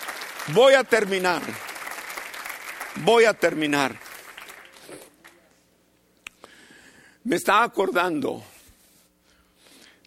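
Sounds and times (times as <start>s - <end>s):
crowd applause: 0.0s - 5.4s
speech: 0.5s - 1.7s, 3.0s - 4.0s, 7.2s - 8.5s.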